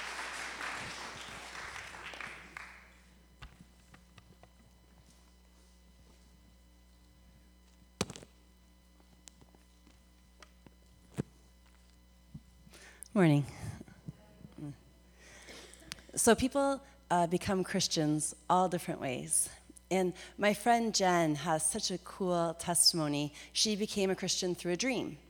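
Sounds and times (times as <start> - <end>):
warm round of audience applause: 0.0 - 2.9
speech: 13.2 - 13.6, 16.2 - 25.2.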